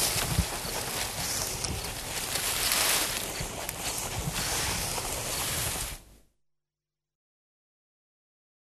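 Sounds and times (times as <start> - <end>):
Giant anteater snorting and sniffing: 0.0 - 6.0.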